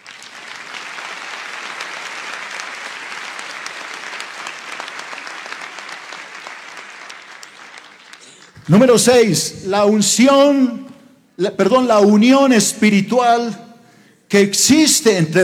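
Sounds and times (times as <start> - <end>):
audience applause: 0.0 - 9.2
speech: 8.7 - 13.6, 14.3 - 15.4.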